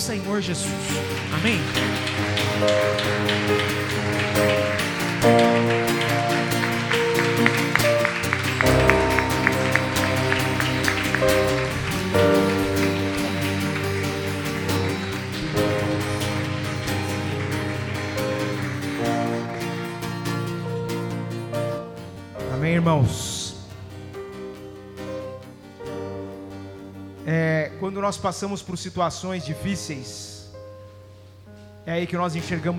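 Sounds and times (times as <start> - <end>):
speech: 0.0 - 6.0, 28.1 - 30.3, 31.9 - 32.7
crowd clapping: 0.0 - 21.7
sustained keyboard chords: 0.0 - 28.5.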